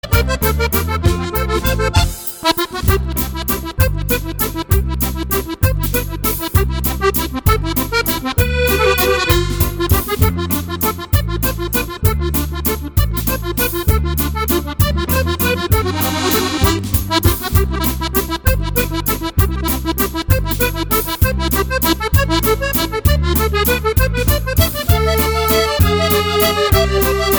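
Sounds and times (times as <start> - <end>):
waltz music: 0.0 - 27.3.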